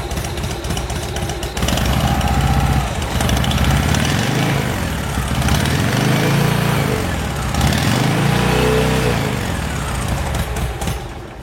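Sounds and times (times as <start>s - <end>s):
motorbike engine running after fuel problem fixed and carburetor cleared: 0.0s - 11.4s.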